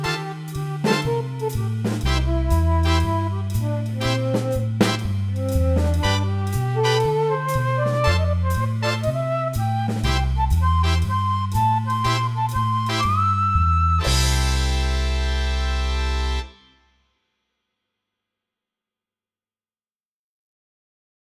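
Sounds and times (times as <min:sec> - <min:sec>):
MIDI blues music: 0:00.0 - 0:16.5.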